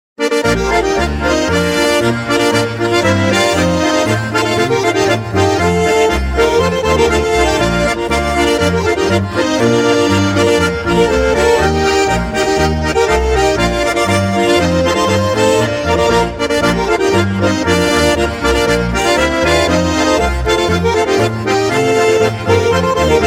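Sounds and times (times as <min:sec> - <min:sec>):
march music: 0:00.2 - 0:23.2.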